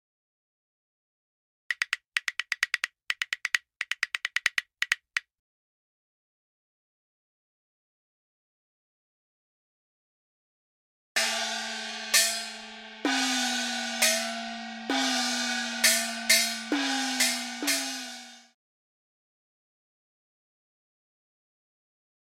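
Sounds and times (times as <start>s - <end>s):
Asian percussion: 1.7s - 5.2s, 11.2s - 18.6s.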